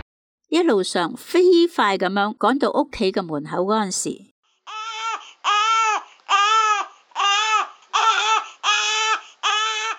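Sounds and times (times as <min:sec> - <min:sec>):
speech: 0:00.5 - 0:04.3
baby crying: 0:04.7 - 0:09.9.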